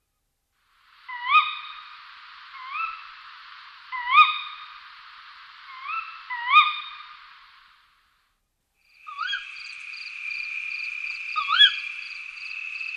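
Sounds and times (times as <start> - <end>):
tawny owl giving harsh sharp screeching calls: 1.1 - 1.9, 2.5 - 3.0, 3.9 - 4.7, 5.7 - 7.1, 9.0 - 12.9.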